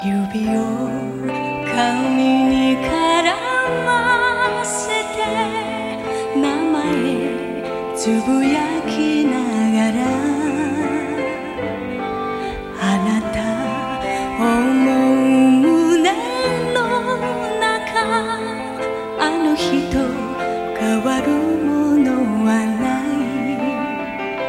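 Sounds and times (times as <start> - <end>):
heavenly voice singing: 0.0 - 24.4.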